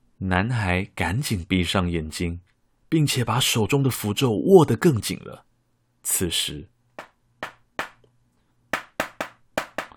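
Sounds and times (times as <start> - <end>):
speech: 0.2 - 7.1
knocking on glass: 7.0 - 8.0, 8.8 - 9.9.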